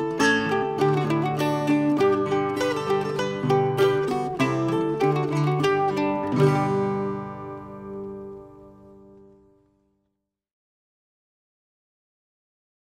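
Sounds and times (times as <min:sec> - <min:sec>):
mandolin: 0:00.0 - 0:09.8.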